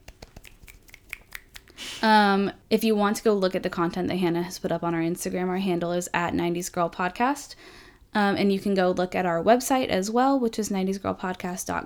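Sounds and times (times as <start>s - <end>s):
hand claps: 0.0s - 1.8s
speech: 2.0s - 11.8s.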